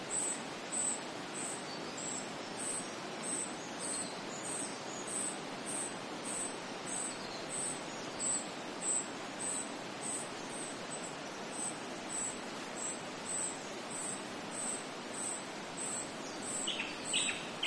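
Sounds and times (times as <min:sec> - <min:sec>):
soft wind hiss: 0:00.0 - 0:17.6
small bird high thin chip calls: 0:14.6 - 0:17.6.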